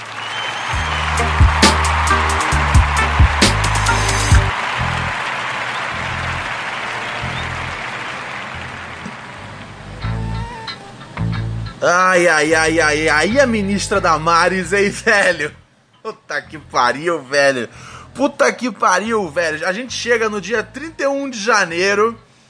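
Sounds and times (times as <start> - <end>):
round of applause with crackling clapping: 0.0 - 9.8
speech: 11.8 - 22.2.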